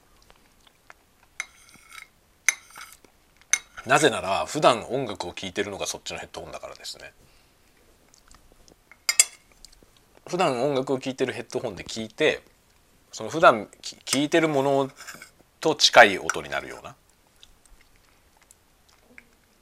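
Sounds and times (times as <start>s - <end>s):
cutlery and dishes clinking while eating spaghetti: 1.4s - 4.0s, 8.9s - 9.5s, 14.1s - 15.4s
speech: 3.8s - 7.4s, 10.3s - 12.5s, 13.1s - 17.0s.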